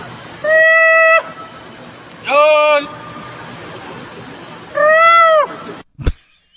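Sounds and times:
monkey call: 0:00.4 - 0:01.5, 0:04.7 - 0:06.5.

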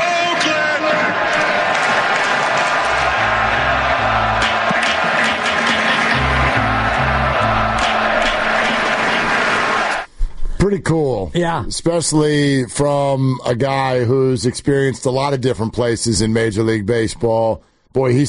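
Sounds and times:
baseball stadium crowd cheering: 0:00.0 - 0:10.1
speech: 0:10.8 - 0:18.2.

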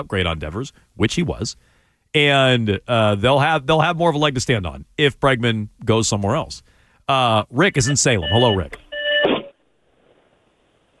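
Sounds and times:
speech: 0:00.0 - 0:08.8
beeping on caller's phone line: 0:07.8 - 0:09.6.

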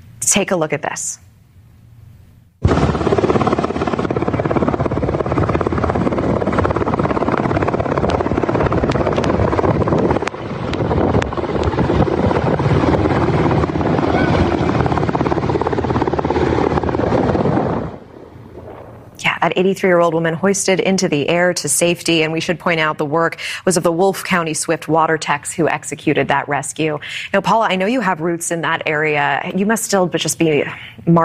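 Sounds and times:
speech: 0:00.3 - 0:01.3, 0:19.5 - 0:31.2
wind buffeting: 0:02.6 - 0:21.5
rescue helicopter hovering: 0:02.6 - 0:29.2.

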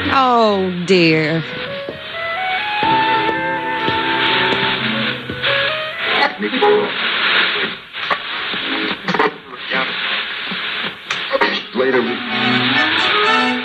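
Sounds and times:
crackling interference from an old radio in a gumwood cabinet: 0:00.0 - 0:13.6
speech: 0:00.2 - 0:01.6, 0:06.4 - 0:07.1, 0:11.8 - 0:12.9
sustained musical tones from an old radio: 0:01.4 - 0:06.4, 0:12.0 - 0:13.6.

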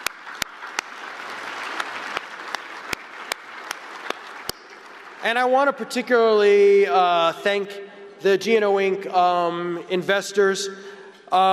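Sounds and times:
audience applause: 0:00.0 - 0:06.1
speech: 0:05.2 - 0:11.5.

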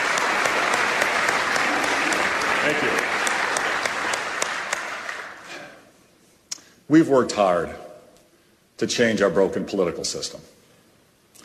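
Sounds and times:
audience applause: 0:00.0 - 0:05.7
speech: 0:02.6 - 0:03.2, 0:06.9 - 0:07.8, 0:08.8 - 0:10.6.

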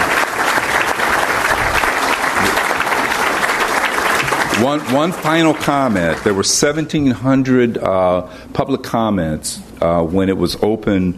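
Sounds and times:
audience round of applause in tribute to police and citizens: 0:00.0 - 0:06.7
speech: 0:04.6 - 0:11.1.

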